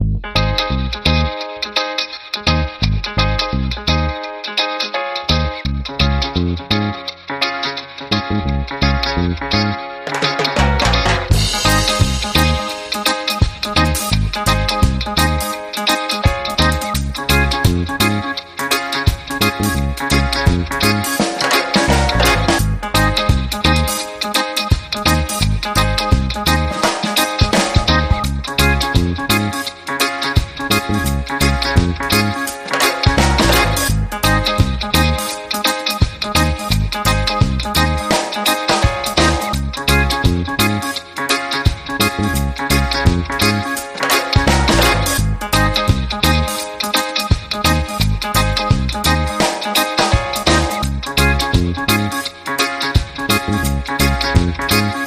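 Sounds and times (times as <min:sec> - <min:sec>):
reggae music: 0:00.0 - 0:55.0.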